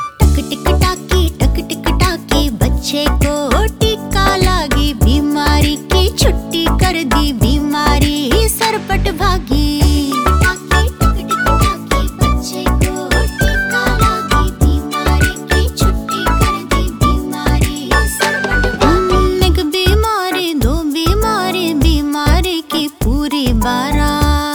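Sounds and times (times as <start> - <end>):
person singing a vaccination song in Hindi: 0.2 - 24.5.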